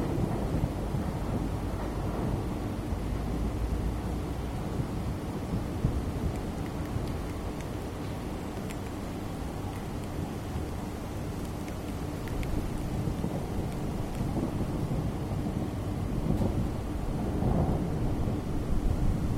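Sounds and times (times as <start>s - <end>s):
thunder: 0.0s - 6.3s, 12.6s - 19.3s
PC fans whirring: 0.0s - 19.3s.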